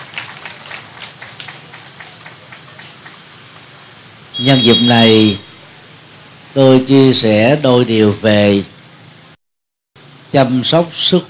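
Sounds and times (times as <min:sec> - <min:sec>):
loud applause: 0:00.0 - 0:03.8
speech: 0:04.4 - 0:05.4, 0:06.6 - 0:08.7, 0:10.3 - 0:11.2.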